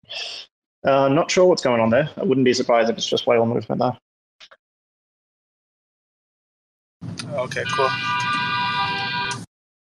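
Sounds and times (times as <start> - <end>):
speech: 0.0 - 4.0, 7.4 - 8.4
car horn honking: 7.6 - 9.5.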